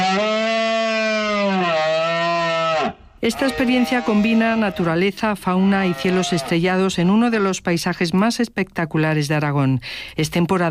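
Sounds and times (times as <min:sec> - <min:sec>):
rutting deer bellowing: 0:00.0 - 0:06.7
speech: 0:03.2 - 0:10.6.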